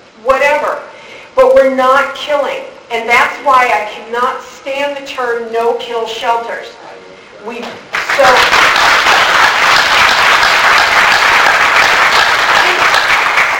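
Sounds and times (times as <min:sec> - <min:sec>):
speech: 0:00.2 - 0:06.8, 0:07.4 - 0:09.0
large audience applause: 0:07.9 - 0:13.5.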